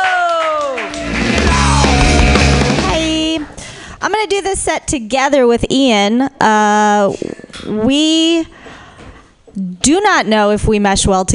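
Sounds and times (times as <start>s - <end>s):
audience clapping and cheering: 0.0s - 3.4s
speech: 4.0s - 8.6s, 9.6s - 11.3s.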